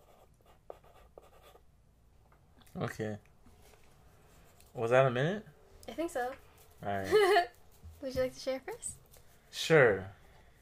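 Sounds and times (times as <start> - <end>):
pencil writing on a box: 0.0 - 1.6, 6.0 - 9.2
speech: 2.8 - 3.3, 4.8 - 10.2.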